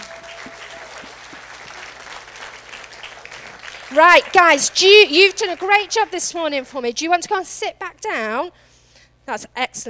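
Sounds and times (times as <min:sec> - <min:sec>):
applause: 0:00.0 - 0:06.6
speech: 0:03.9 - 0:08.7, 0:09.3 - 0:09.8.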